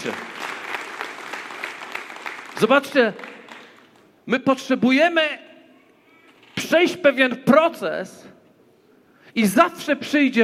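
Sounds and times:
speech: 0.0 - 0.3, 2.6 - 3.3, 4.3 - 5.4, 6.6 - 8.3, 9.3 - 10.4
audience clapping: 0.0 - 4.2.

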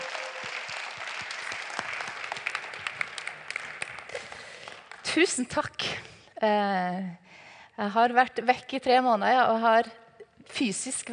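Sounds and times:
welcoming applause: 0.0 - 5.2
speech: 5.2 - 7.2, 7.8 - 11.1.

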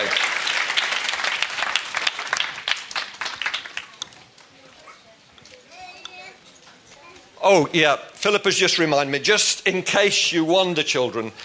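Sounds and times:
audience applause: 0.0 - 4.5
children chattering: 3.7 - 7.6
speech: 7.4 - 11.4.

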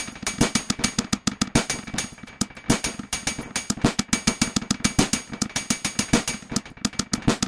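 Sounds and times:
modular drum patch processed through Mimeophon delay: 0.0 - 7.4.

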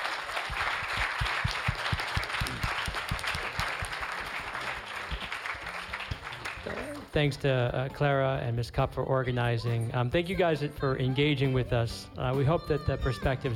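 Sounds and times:
audience applause: 0.0 - 7.2
speech: 7.1 - 13.5.

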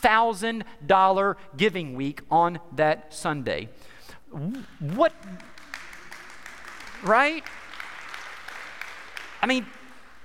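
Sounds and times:
speech: 0.0 - 5.5, 7.0 - 7.6, 9.4 - 9.8
rhythmic clapping: 4.4 - 10.2
applause: 4.7 - 10.2.

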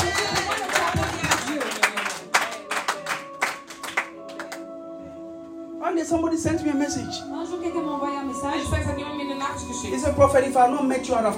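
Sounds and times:
audience clapping: 0.0 - 4.7
speech: 6.0 - 11.3.

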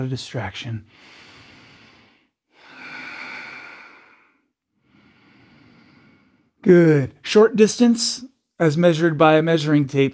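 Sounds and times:
speech: 0.0 - 1.2, 6.6 - 10.1
Ujjayi breathing during yoga: 0.9 - 6.6.

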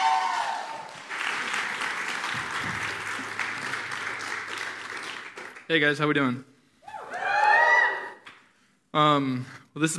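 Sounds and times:
audience applause in a church: 0.0 - 5.7
speech: 5.7 - 6.5, 9.0 - 9.9.

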